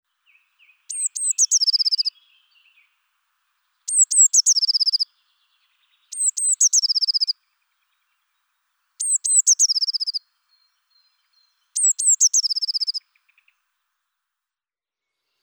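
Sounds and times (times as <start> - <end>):
Eurasian blue tit song: 0.2 - 3.0, 3.8 - 13.6.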